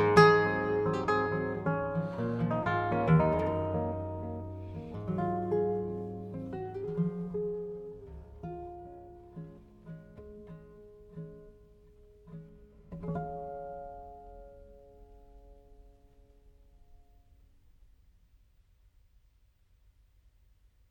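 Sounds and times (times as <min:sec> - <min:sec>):
Catalan folk song: 0:00.0 - 0:14.3.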